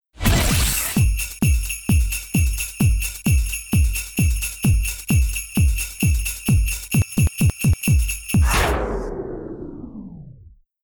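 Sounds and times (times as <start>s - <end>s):
rhythmic bass: 0.9s - 8.6s.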